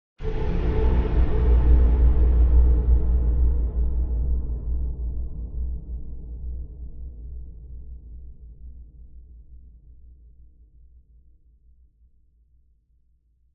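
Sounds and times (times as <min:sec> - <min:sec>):
dark heavy scary cinematic hit: 0:00.2 - 0:04.2.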